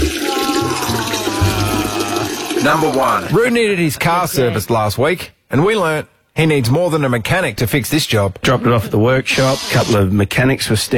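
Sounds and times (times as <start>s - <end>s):
pee sound effect trickling stream of liquid: 0.0s - 3.5s
speech: 2.6s - 10.9s.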